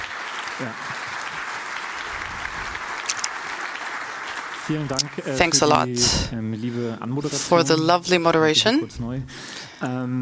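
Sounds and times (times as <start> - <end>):
audience applause: 0.0 - 6.1
speech: 0.6 - 1.0, 4.7 - 10.1
murmur of voices: 4.6 - 8.5.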